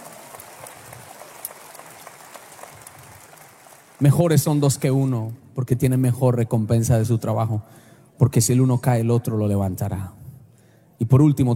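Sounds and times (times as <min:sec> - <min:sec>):
loud audience applause: 0:00.0 - 0:04.8
speech: 0:04.0 - 0:10.2, 0:11.0 - 0:11.5.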